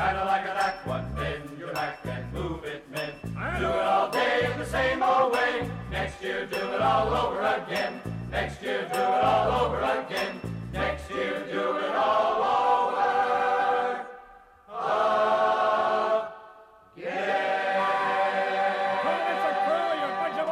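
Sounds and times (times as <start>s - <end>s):
male vocal group singing: 0.0s - 20.4s.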